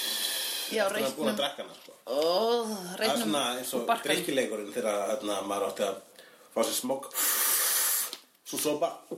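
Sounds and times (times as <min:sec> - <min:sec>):
speech: 0:00.7 - 0:07.3, 0:08.5 - 0:09.1
voice imitating a forceful exhale: 0:07.2 - 0:08.2.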